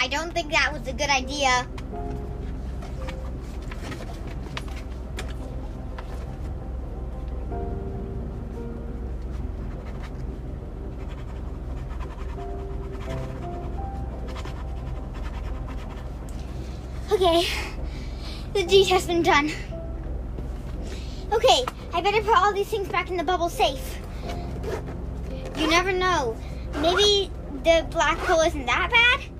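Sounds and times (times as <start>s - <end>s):
speech: 0.0s - 2.2s, 17.2s - 17.7s, 18.6s - 19.7s, 21.4s - 24.0s, 25.6s - 29.3s
constant tonal background: 0.0s - 29.3s
pen scratching across a notepad while writing: 10.9s - 16.3s.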